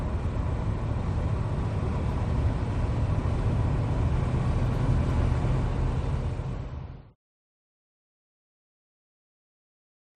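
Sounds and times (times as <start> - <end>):
American V6 car engine: 0.0 - 7.1.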